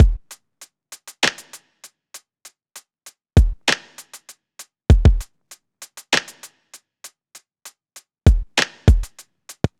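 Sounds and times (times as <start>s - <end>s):
hip-hop drum loop at 98 BPM: 0.0s - 0.4s, 1.0s - 1.8s, 3.4s - 6.6s, 8.3s - 9.7s.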